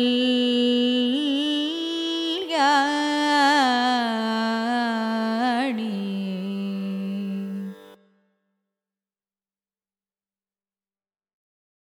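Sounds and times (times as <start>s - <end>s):
Carnatic music: 0.0s - 8.3s.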